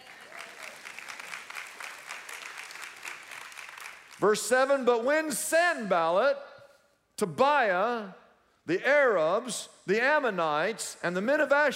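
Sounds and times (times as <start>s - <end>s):
audience clapping: 0.0s - 4.8s
speech: 4.2s - 6.5s, 7.2s - 11.7s.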